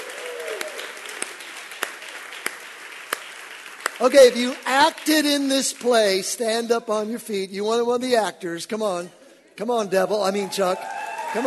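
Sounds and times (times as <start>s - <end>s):
audience applause: 0.0s - 5.3s, 10.4s - 11.4s
speech: 4.0s - 11.4s.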